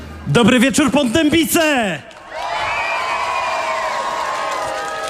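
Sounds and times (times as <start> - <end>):
speech: 0.4 - 2.1
large crowd cheering and shouting: 2.1 - 5.0.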